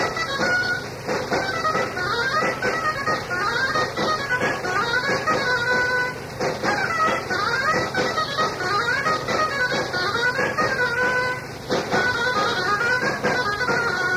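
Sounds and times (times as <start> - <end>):
traditional procession dance music in Valladolid: 0.0 - 14.1.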